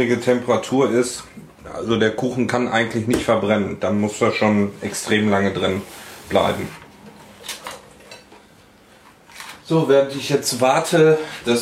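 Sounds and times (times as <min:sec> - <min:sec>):
speech: 0:00.0 - 0:06.8, 0:09.7 - 0:11.5
dishes clattering while unloading dishwasher: 0:07.4 - 0:08.4.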